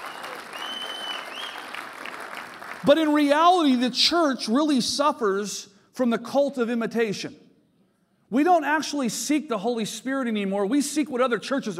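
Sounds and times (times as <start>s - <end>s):
church congregation applauding: 0.0s - 3.4s
speech: 2.8s - 7.4s, 8.3s - 11.7s.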